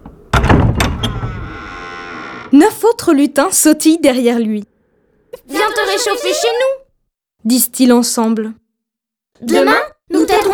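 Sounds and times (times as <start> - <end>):
heavy door opening clunk: 0.0 - 1.8
speech: 2.5 - 4.7, 5.3 - 6.8, 7.4 - 8.6, 9.4 - 10.5.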